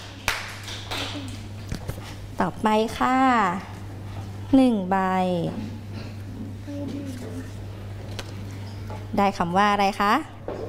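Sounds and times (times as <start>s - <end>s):
applause: 0.0s - 1.2s
speech: 1.2s - 1.4s, 2.4s - 3.7s, 4.5s - 5.8s, 9.2s - 10.3s.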